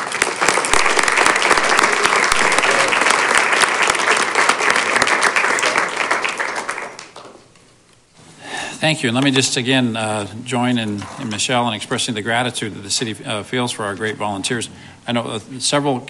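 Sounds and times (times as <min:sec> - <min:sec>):
applause: 0:00.0 - 0:07.4
speech: 0:08.8 - 0:16.0.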